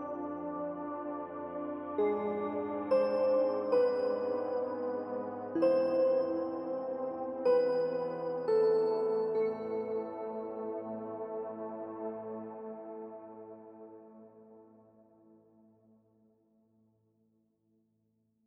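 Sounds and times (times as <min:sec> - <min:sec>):
calming ambience: 0:00.0 - 0:13.8.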